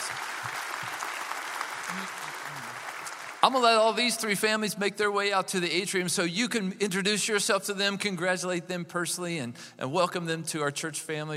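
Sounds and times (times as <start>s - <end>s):
church congregation applauding: 0.0s - 4.2s
speech: 1.9s - 2.7s, 3.4s - 11.3s.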